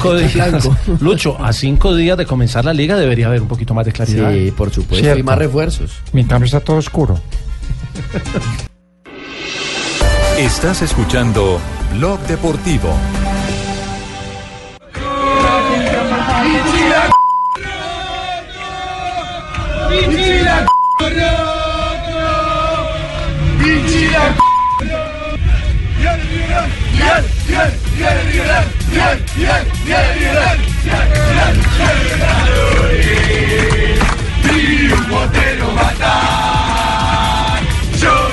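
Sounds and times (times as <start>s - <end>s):
speech: 0.0s - 7.4s, 8.1s - 8.7s, 10.4s - 13.6s, 19.9s - 21.6s, 23.7s - 25.0s, 26.5s - 34.0s
laughter: 7.6s - 8.7s
football fans chanting and shouting aboard an airplane: 14.8s - 38.3s
beeps: 17.1s - 17.6s, 20.7s - 21.1s, 24.4s - 24.9s.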